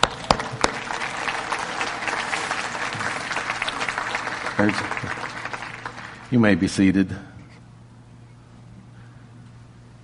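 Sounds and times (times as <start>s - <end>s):
person clapping: 0.0s - 6.3s
speech: 4.6s - 5.2s, 6.3s - 7.3s.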